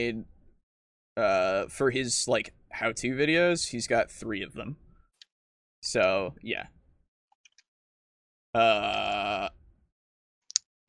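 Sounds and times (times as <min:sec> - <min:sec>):
speech: 0:00.0 - 0:00.3, 0:01.2 - 0:04.8, 0:05.8 - 0:06.8, 0:08.5 - 0:09.5
burp: 0:08.6 - 0:09.6.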